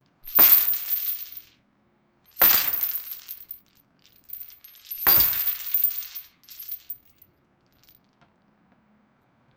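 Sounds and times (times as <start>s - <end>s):
swinging heavy chains: 0.2s - 1.5s, 2.3s - 7.2s.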